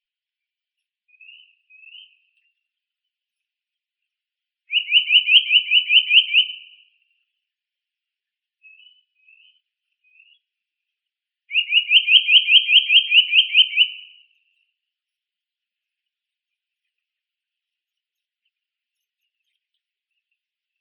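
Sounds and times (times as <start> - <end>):
Eurasian nuthatch Sitta europaea calling: 4.7 - 6.6, 11.5 - 14.0.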